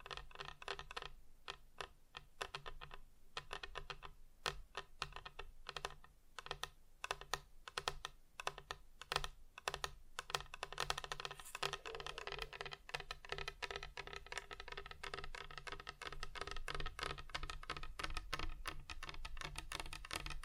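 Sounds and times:
rapid fingertip tapping on hard surfaces: 0:00.0 - 0:20.4.

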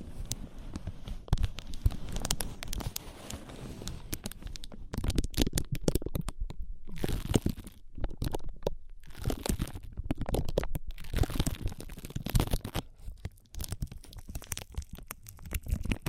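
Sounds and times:
ear massage rubbing and crackling: 0:00.0 - 0:04.5
sharp clicks and crinkles: 0:00.0 - 0:16.0.

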